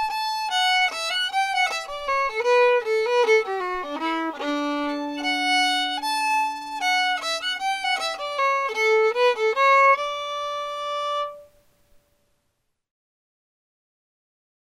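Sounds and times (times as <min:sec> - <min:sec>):
fiddle: 0:00.0 - 0:11.7.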